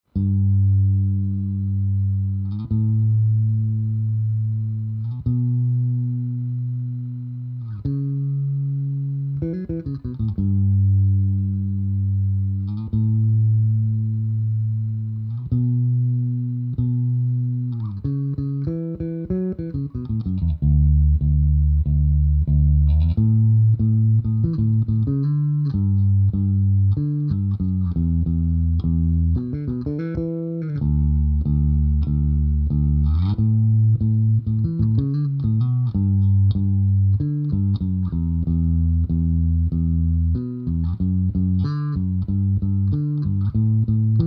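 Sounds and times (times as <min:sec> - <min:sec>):
DI bass in stereo: 0:00.0 - 0:44.2.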